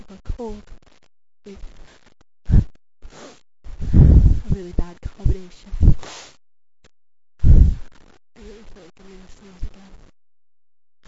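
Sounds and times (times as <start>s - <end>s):
female voice: 0.0s - 0.6s, 4.4s - 6.0s, 8.4s - 10.0s.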